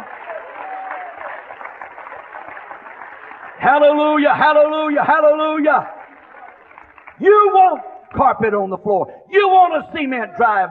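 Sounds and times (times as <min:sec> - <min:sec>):
crowd clapping: 0:00.0 - 0:08.6
speech: 0:03.6 - 0:06.0, 0:07.2 - 0:10.6.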